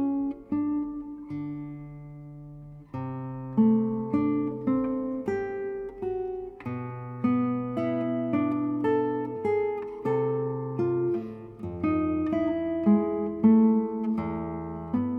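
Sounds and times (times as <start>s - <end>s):
guitar sarabanda in A minor: 0.0s - 15.1s.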